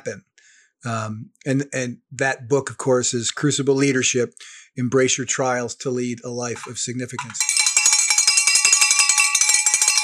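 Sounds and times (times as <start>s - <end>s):
speech: 0.0s - 7.5s
bell being rung: 6.6s - 10.0s.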